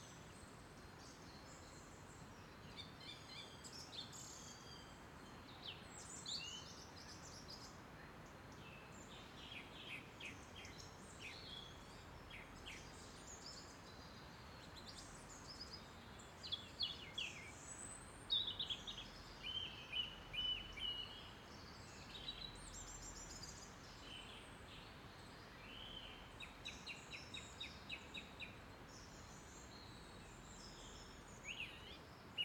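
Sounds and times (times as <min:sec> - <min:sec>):
birds in a daytime spring forest: 0:00.0 - 0:32.4.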